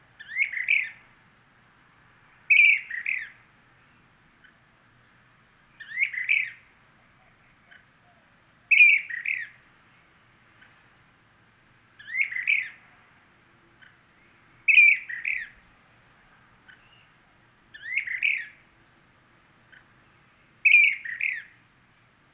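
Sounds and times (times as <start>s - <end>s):
Brown-crested flycatcher Myiarchus tyrannulus magister calling: 0.2s - 1.1s, 2.4s - 4.7s, 5.7s - 9.6s, 12.0s - 13.0s, 13.8s - 15.6s, 16.6s - 18.7s, 19.6s - 21.7s.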